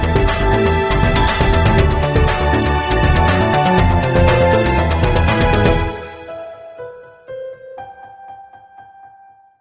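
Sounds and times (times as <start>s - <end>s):
battle music: 0.1s - 6.0s.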